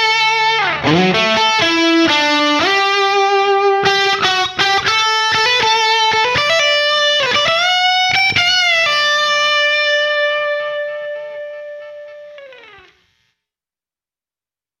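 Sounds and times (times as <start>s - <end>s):
guitar through reverb unit: 0.0s - 13.1s.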